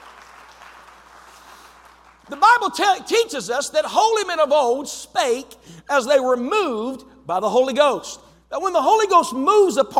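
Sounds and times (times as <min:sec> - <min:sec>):
people clapping: 0:00.0 - 0:02.8
speech: 0:02.3 - 0:09.9.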